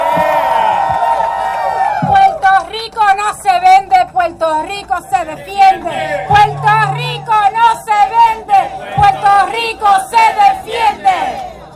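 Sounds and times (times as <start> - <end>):
crowd roaring and cheering: 0.0 - 2.6, 5.4 - 11.6
speech: 4.2 - 10.5.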